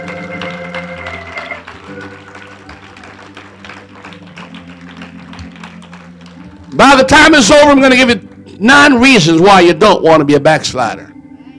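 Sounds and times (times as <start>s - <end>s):
audience clapping hands: 0.0s - 8.5s
speech: 6.8s - 11.1s.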